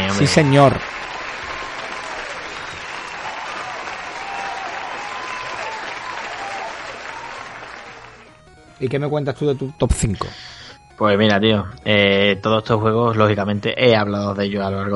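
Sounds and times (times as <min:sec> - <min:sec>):
crowd applause: 0:00.0 - 0:08.3
speech: 0:00.2 - 0:00.9, 0:08.8 - 0:14.9.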